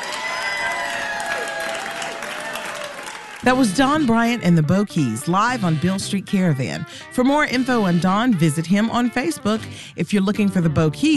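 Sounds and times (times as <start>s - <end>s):
audience applause after live performance: 0.0s - 3.5s
speech: 3.4s - 11.1s.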